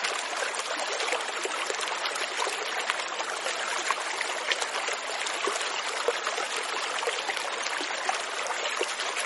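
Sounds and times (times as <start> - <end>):
river flowing: 0.0 - 9.2
waves: 8.5 - 9.2.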